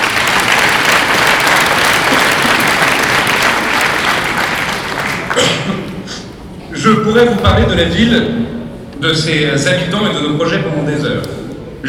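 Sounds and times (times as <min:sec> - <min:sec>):
audience applause: 0:00.0 - 0:05.5
speech: 0:06.8 - 0:11.8.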